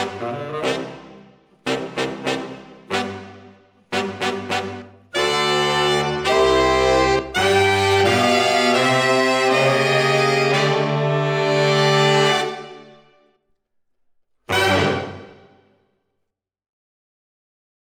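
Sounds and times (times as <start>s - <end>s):
saxophones: 0.0s - 13.0s.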